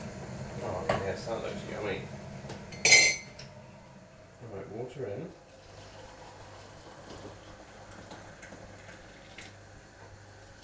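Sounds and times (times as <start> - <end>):
speech: 0.6 - 2.2, 4.5 - 5.4
spoon stirring in a cup: 2.8 - 3.3.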